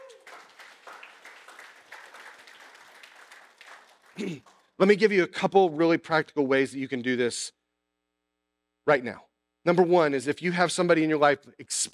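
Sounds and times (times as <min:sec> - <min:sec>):
faint cheers: 0:00.0 - 0:00.5
audience applause: 0:00.0 - 0:04.7
speech: 0:04.2 - 0:07.6, 0:08.8 - 0:11.9.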